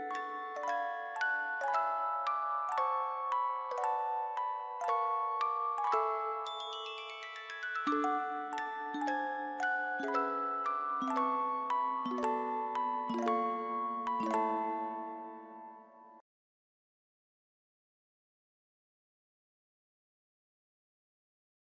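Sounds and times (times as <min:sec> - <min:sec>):
music box melody: 0:00.0 - 0:16.2.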